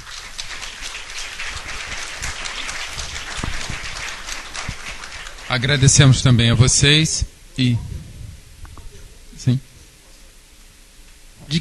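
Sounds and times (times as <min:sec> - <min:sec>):
audience applause: 0:00.0 - 0:06.2
speech: 0:05.5 - 0:07.9, 0:09.5 - 0:09.7.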